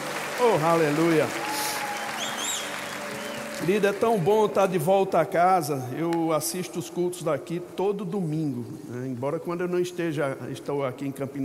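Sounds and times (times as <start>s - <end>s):
audience applause: 0.0s - 5.0s
speech: 0.4s - 1.5s, 3.6s - 11.4s.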